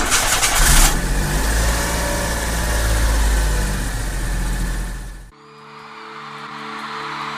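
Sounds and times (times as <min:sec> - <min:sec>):
car engine cranking, starting and idling: 0:00.0 - 0:05.3.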